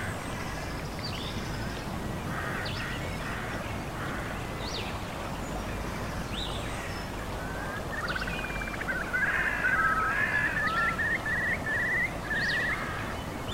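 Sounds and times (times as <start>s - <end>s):
natural ambient white noise hiss: 0.0s - 13.5s.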